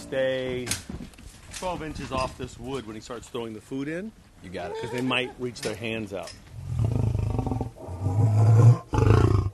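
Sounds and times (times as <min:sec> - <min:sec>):
speech: 0:00.1 - 0:01.0, 0:01.6 - 0:06.5
big cat roaring: 0:06.6 - 0:09.5.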